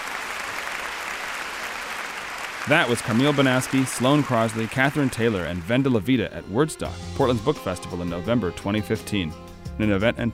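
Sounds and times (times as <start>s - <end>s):
audience applause for authors at Wordstock, Portland's book festival: 0.0s - 6.0s
speech: 2.6s - 10.3s.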